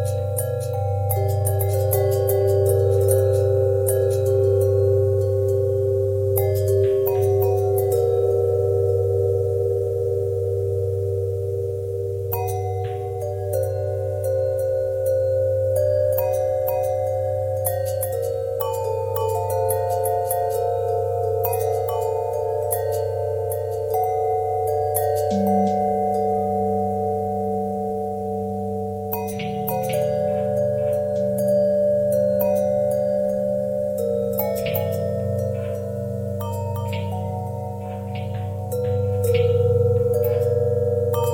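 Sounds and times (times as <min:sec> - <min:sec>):
long bell with pitch bend and twist: 0:00.0 - 0:41.3.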